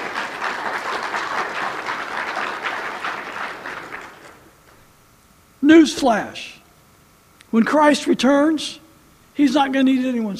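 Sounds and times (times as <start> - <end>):
applause: 0.0 - 4.8
speech: 5.7 - 6.6, 7.5 - 8.8, 9.4 - 10.3.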